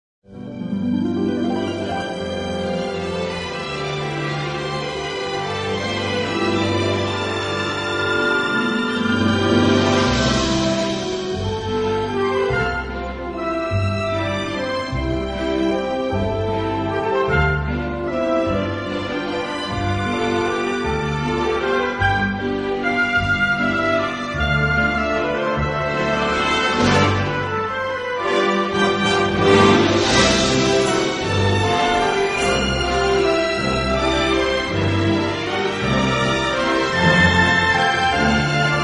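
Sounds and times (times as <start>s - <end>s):
instrumental waltz: 0.3s - 38.8s.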